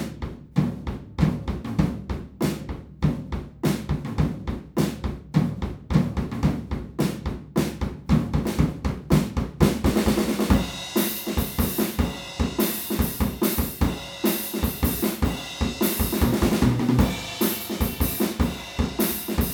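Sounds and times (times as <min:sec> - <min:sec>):
drums recorded with an omnidirectional PZM microphone: 0:00.0 - 0:19.5.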